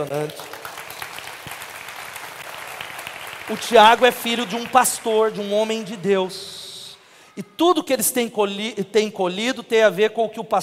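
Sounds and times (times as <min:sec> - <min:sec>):
speech: 0:00.0 - 0:00.6, 0:03.5 - 0:06.6, 0:07.4 - 0:10.6
church audience applause: 0:00.0 - 0:06.6.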